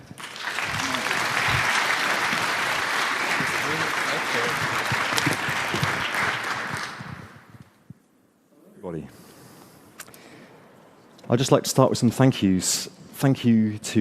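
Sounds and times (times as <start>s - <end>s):
audience applause: 0.0s - 7.4s
speech: 11.3s - 13.9s.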